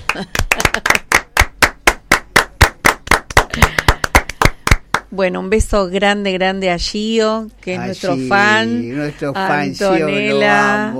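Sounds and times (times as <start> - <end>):
applause: 0.0 - 5.1
speech: 0.2 - 1.0, 5.1 - 10.9.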